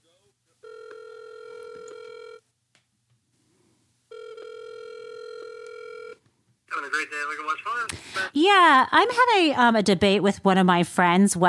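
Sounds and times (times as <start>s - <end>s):
phone line ringback tones on an outgoing call: 0.6s - 2.4s, 4.1s - 6.2s
speech: 6.9s - 11.4s.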